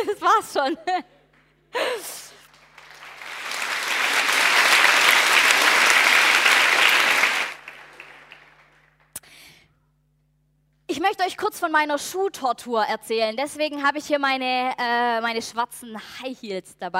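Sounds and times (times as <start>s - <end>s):
speech: 0.0s - 2.2s, 11.0s - 16.9s
audience applause: 1.8s - 9.0s.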